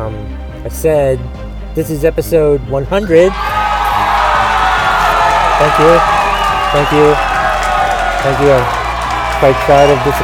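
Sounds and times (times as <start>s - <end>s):
speech: 0.1s - 3.6s, 5.6s - 7.3s, 8.2s - 8.8s, 9.4s - 10.2s
audience applause and cheering: 3.3s - 10.2s
crowd whooping: 3.3s - 10.2s.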